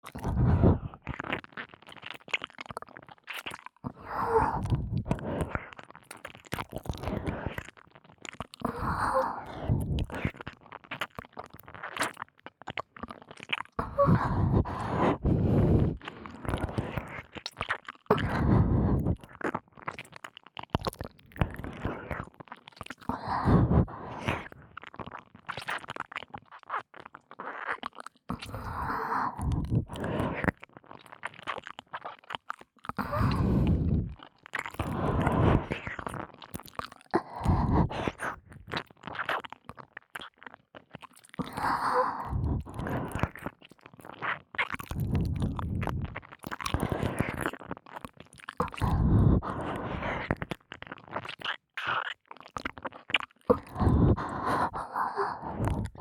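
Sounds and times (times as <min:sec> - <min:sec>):
ear licking sounds: 0:00.0 - 0:56.0
sticky sucking sounds: 0:00.1 - 0:01.1, 0:03.9 - 0:05.6, 0:08.6 - 0:10.3, 0:13.8 - 0:17.2, 0:18.1 - 0:19.3, 0:23.1 - 0:24.6, 0:28.3 - 0:30.5, 0:33.0 - 0:34.2, 0:34.8 - 0:36.2, 0:37.2 - 0:38.7, 0:41.4 - 0:43.5, 0:44.9 - 0:47.6, 0:48.6 - 0:51.3, 0:53.5 - 0:56.0.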